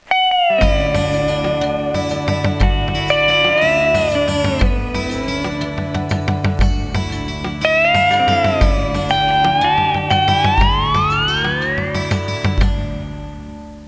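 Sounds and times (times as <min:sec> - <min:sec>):
Hawaiian music ringtone: 0:00.1 - 0:13.4.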